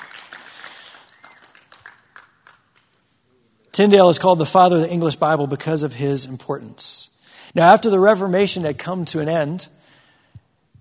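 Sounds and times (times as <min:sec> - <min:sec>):
quiet audience clapping: 0:00.0 - 0:03.0
speech: 0:03.8 - 0:07.0, 0:07.6 - 0:09.8.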